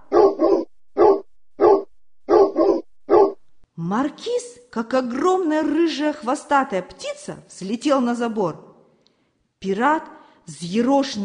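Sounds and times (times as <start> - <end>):
dog barking loudly: 0.0 - 3.4
speech: 3.8 - 8.7, 9.6 - 11.2.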